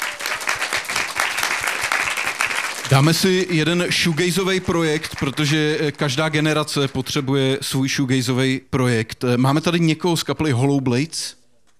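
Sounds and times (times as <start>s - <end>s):
live music show audience applause: 0.0s - 6.7s
speech: 2.9s - 11.4s.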